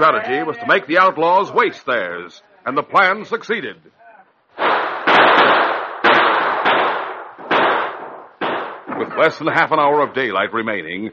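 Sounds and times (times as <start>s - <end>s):
speech: 0.0s - 4.0s, 9.0s - 11.1s
exchange of gunfire: 4.6s - 9.3s.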